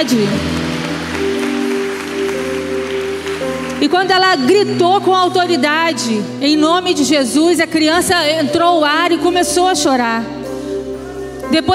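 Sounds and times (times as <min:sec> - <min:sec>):
speech: 0:00.0 - 0:00.6, 0:01.2 - 0:01.4, 0:03.8 - 0:10.4, 0:11.5 - 0:11.7
crowd applauding: 0:00.0 - 0:05.1.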